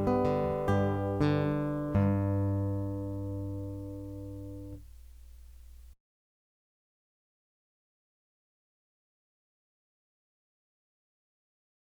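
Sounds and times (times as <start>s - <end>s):
alternating bass guitar etude: 0.0s - 5.9s.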